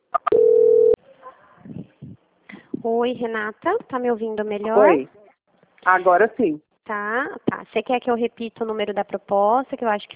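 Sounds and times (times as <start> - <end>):
telephone call-transfer tone on a dropped call: 0.2 - 1.0
speech: 2.8 - 5.2, 5.8 - 10.1.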